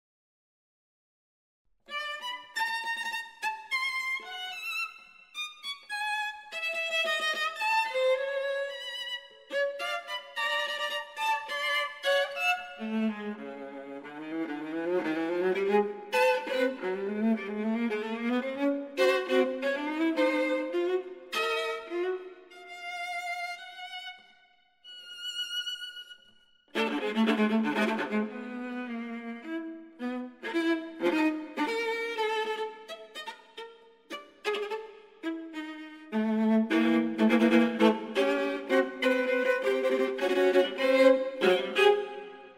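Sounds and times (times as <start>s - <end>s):
viola capriccio: 1.9s - 42.5s.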